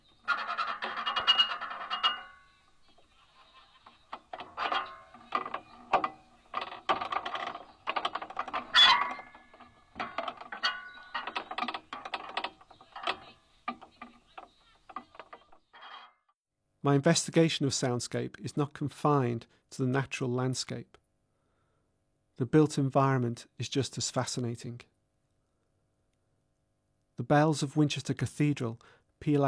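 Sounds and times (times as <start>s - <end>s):
metal pagoda frame creaking in the breeze: 0.0s - 16.2s
speech: 16.9s - 21.0s, 22.4s - 24.9s, 27.3s - 29.4s.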